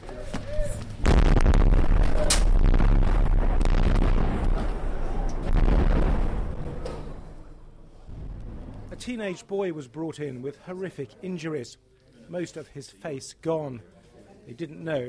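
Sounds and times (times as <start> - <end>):
bombs exploding in Homs, Syria: 1.0 - 7.4, 8.1 - 9.0
speech: 9.0 - 15.0.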